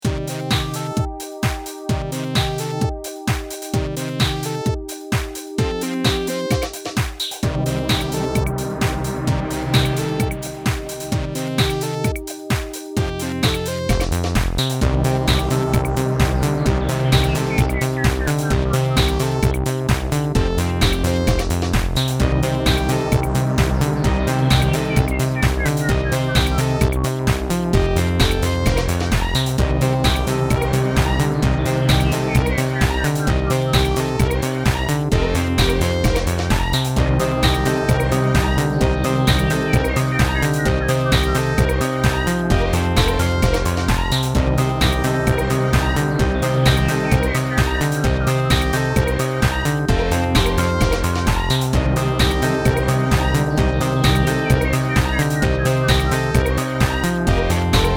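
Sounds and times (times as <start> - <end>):
dance ringtone: 0.0 - 57.9.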